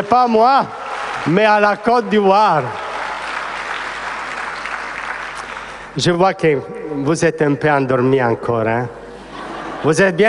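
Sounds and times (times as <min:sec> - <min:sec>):
speech: 0:00.0 - 0:02.8, 0:06.0 - 0:09.0, 0:09.8 - 0:10.2
audience applauding at a gathering: 0:00.0 - 0:06.0
laughter: 0:09.1 - 0:10.2.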